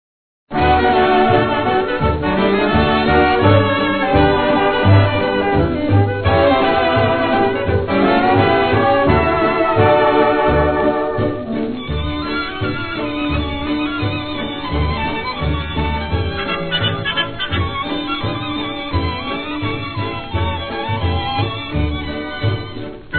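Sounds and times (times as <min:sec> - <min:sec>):
symphonic jazz orchestra: 0:00.5 - 0:23.1
laughter: 0:15.6 - 0:20.1.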